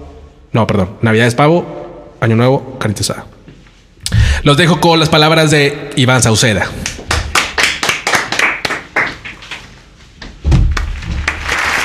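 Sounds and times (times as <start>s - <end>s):
speech: 0.5s - 3.4s, 4.4s - 6.9s
people clapping: 6.8s - 9.8s, 10.7s - 11.8s.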